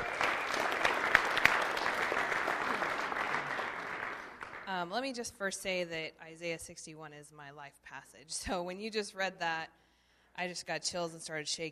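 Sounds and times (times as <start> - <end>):
audience round of applause: 0.0 - 4.7
speech: 4.8 - 11.7.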